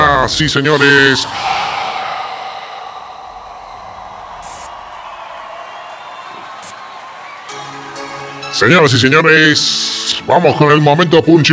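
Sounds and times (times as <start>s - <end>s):
speech: 0.3s - 1.6s, 8.6s - 11.5s
whoops: 1.2s - 8.1s
crowd cheering: 1.2s - 8.6s
crowd applause: 1.9s - 8.4s.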